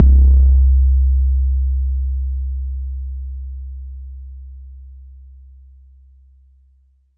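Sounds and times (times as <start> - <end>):
bass drum: 0.0 - 3.4.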